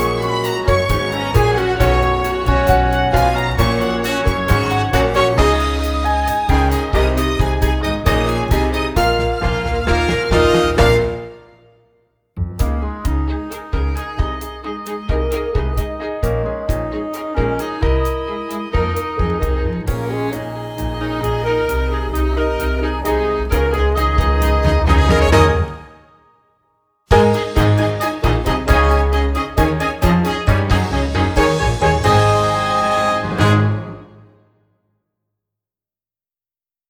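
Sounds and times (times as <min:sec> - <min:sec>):
instrumental music: 0:00.0 - 0:26.5, 0:27.1 - 0:34.6.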